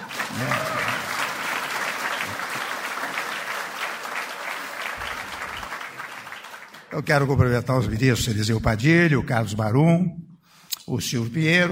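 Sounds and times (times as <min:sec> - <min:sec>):
audience applause: 0:00.0 - 0:06.9
speech: 0:00.4 - 0:00.7, 0:06.9 - 0:10.2, 0:10.9 - 0:11.6.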